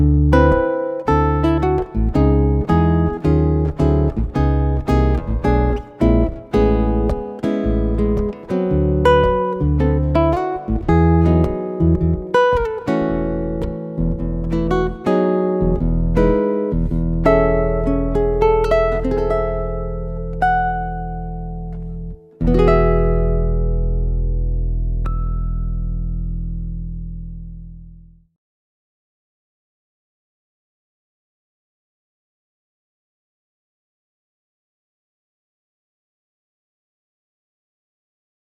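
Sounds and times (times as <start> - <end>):
fingerstyle guitar: 0.0 - 28.0.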